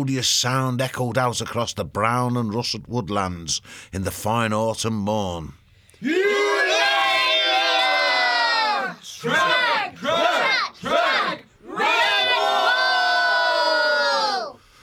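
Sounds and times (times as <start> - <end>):
speech: 0.0 - 6.3
crowd cheering loudly: 6.0 - 14.6.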